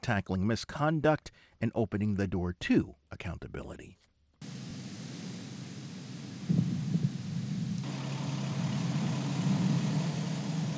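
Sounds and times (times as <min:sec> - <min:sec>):
speech: 0:00.0 - 0:04.1
rocket engines roaring at launch: 0:04.4 - 0:10.7.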